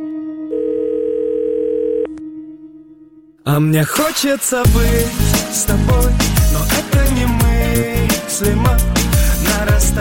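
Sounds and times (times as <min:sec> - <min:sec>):
long telephone dial tone: 0:00.5 - 0:02.1
speech: 0:03.4 - 0:09.9.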